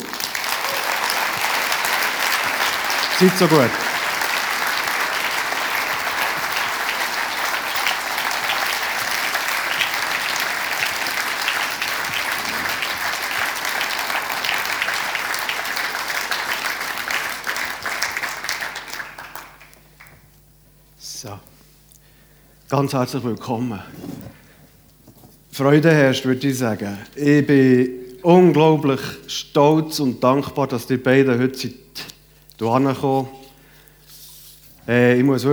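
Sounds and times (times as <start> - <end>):
audience applause: 0.0 - 20.3
speech: 3.2 - 3.8, 22.8 - 24.1, 25.6 - 31.8, 32.6 - 33.4, 34.9 - 35.5.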